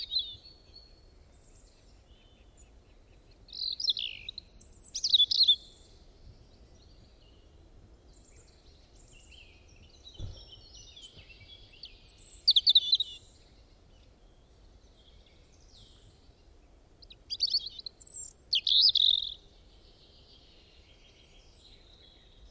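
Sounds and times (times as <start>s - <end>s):
bird chirping and trilling: 3.6s - 5.8s, 9.1s - 13.3s, 17.3s - 19.4s.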